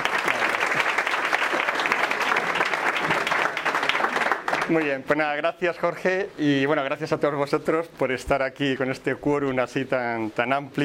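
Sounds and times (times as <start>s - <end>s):
loud audience applause: 0.0s - 5.0s
speech: 4.7s - 10.8s.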